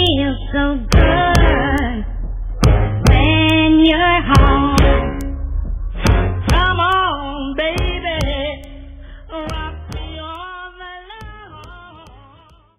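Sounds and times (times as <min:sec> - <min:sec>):
drum machine beat: 0:00.9 - 0:02.0, 0:02.6 - 0:05.4, 0:06.0 - 0:07.1, 0:07.7 - 0:08.8, 0:09.4 - 0:12.7.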